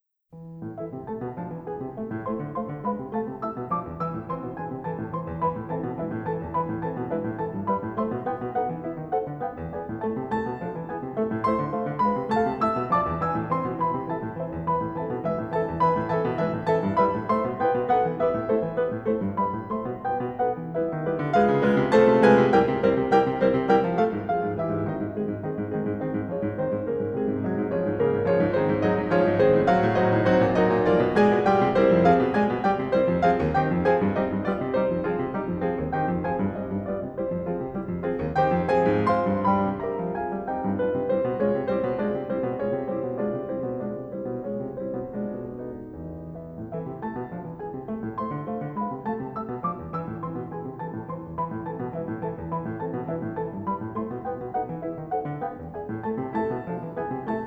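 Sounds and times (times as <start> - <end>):
piano piece in A minor: 0.0 - 57.4.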